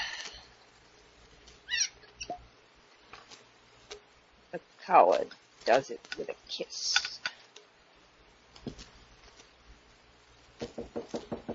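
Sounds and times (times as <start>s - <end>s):
speech: 4.5s - 7.0s
knocking on a door: 10.6s - 11.5s.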